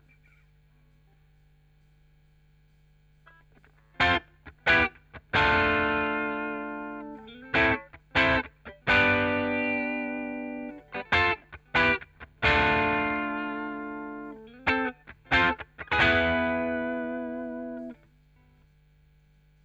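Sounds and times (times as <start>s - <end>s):
chorus effect guitar: 3.2s - 18.6s.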